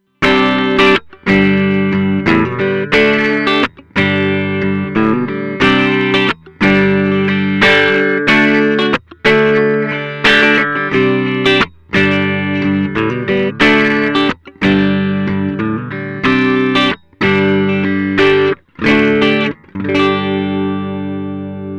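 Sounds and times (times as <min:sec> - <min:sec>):
clean electric guitar through Tech 21 Sansamp Classic: 0:00.0 - 0:21.7.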